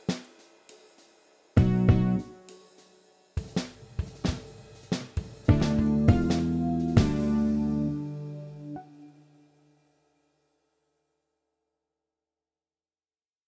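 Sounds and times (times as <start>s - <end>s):
drum solo: 0.0s - 8.4s.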